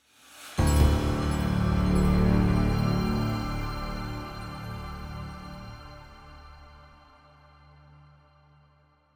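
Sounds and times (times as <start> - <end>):
combat room outro stinger: 0.6 - 6.8.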